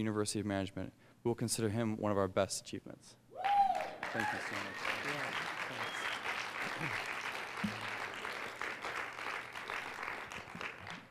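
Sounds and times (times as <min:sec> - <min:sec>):
speech: 0:00.0 - 0:03.2, 0:04.1 - 0:05.5, 0:06.8 - 0:07.7
applause: 0:03.4 - 0:11.1.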